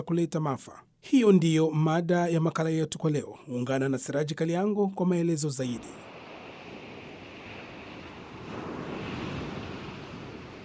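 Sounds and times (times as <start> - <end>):
speech: 0.0 - 6.1
wind: 0.0 - 10.6
ocean waves washing onto the shore: 5.7 - 10.6.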